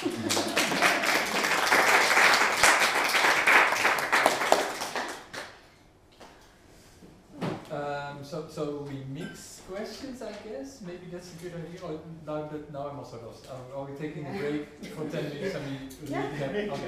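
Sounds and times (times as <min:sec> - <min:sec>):
audience applause: 0:00.0 - 0:05.6
speech: 0:10.4 - 0:16.8.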